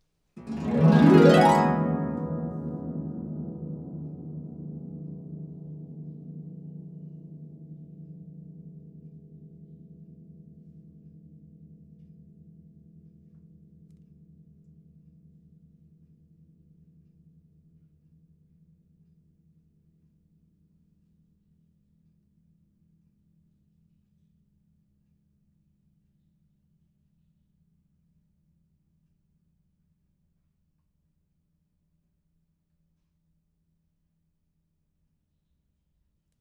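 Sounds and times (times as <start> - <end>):
harp: 0.4 - 6.4.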